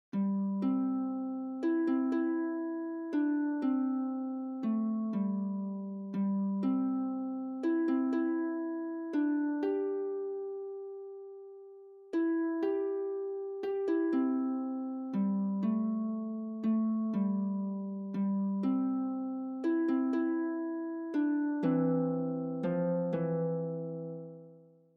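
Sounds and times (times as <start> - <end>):
harp: 0.1 - 24.9.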